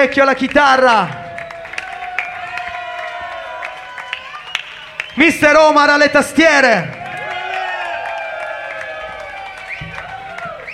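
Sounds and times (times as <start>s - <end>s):
speech: 0.0s - 1.2s, 5.2s - 7.0s
audience applause for a band member: 0.9s - 5.8s, 6.6s - 10.7s.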